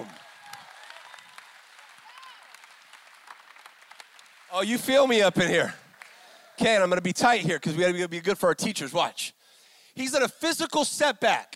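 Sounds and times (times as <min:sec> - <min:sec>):
audience clapping: 0:00.0 - 0:07.0
speech: 0:04.5 - 0:05.8, 0:06.6 - 0:09.4, 0:10.0 - 0:11.5.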